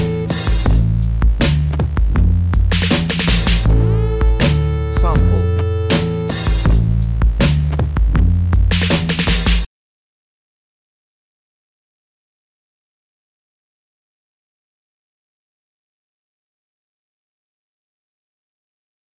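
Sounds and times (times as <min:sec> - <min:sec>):
down drums: 0:00.0 - 0:09.7.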